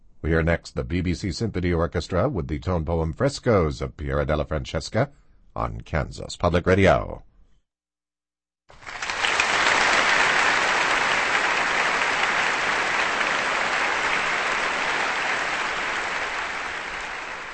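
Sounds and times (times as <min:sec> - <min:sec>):
speech: 0:00.2 - 0:07.3
large audience applauding after a concert performance: 0:08.7 - 0:17.5.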